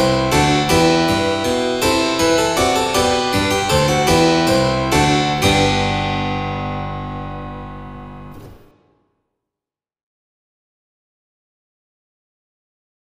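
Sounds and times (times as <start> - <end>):
organ modified for harpsichord sound: 0.0 - 8.7.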